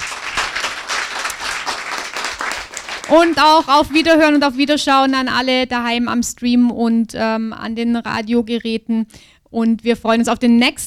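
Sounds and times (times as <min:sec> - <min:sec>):
audience applause: 0:00.0 - 0:03.6
speech: 0:03.1 - 0:10.8.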